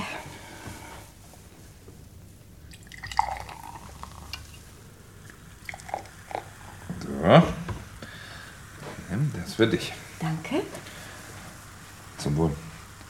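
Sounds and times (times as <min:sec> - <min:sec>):
champagne poured into a glass: 0:02.7 - 0:04.7, 0:05.3 - 0:06.6
speech: 0:07.3 - 0:07.6, 0:09.5 - 0:10.9, 0:12.3 - 0:12.6.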